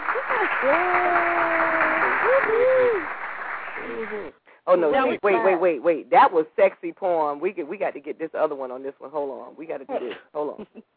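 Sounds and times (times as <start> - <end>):
applause sound effect: 0.0 - 4.4
speech: 0.4 - 1.6, 3.8 - 10.9.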